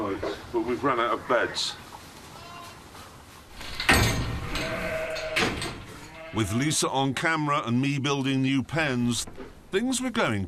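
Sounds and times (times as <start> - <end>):
speech: 0.2 - 1.8, 6.3 - 10.4
newborn lamb bleating: 2.4 - 2.8, 4.4 - 7.2.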